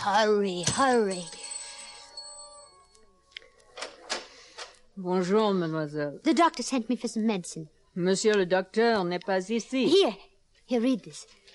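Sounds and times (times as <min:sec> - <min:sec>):
speech: 0:00.0 - 0:01.4, 0:05.0 - 0:11.4
doorbell ringing after pulling bell knob: 0:00.6 - 0:03.2.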